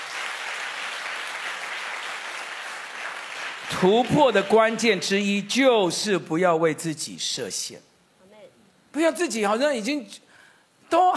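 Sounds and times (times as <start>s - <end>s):
audience clapping hands: 0.0s - 5.0s
speech: 3.7s - 7.9s, 9.0s - 10.2s, 10.9s - 11.1s.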